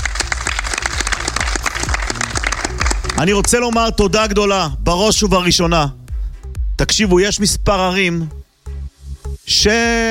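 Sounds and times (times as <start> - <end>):
crowd applauding: 0.0 - 4.0
speech: 3.2 - 6.0, 6.8 - 8.4, 9.5 - 10.0.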